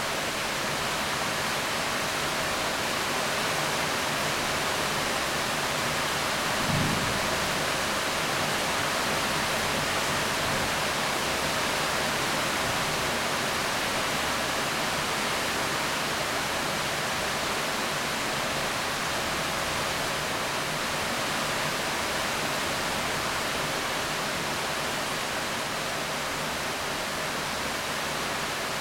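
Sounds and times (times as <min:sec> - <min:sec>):
heavy rain falling on a house roof: 0:00.0 - 0:28.7
thunder: 0:06.5 - 0:08.5.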